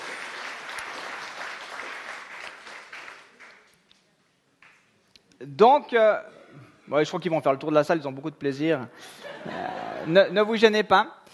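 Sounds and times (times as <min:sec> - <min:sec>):
audience applause: 0:00.0 - 0:03.7
speech: 0:05.4 - 0:11.3
laughter: 0:09.0 - 0:10.3.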